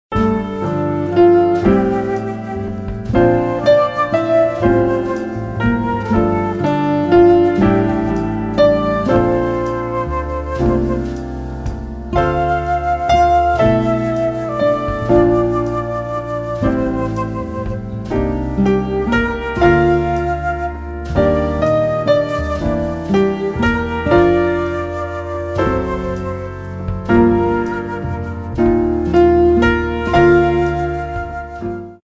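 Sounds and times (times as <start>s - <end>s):
easy listening music: 0.1s - 32.0s.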